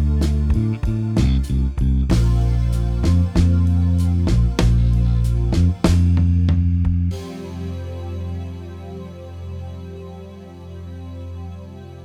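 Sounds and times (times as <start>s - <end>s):
bass chord drill improvisation: 0.0s - 9.4s.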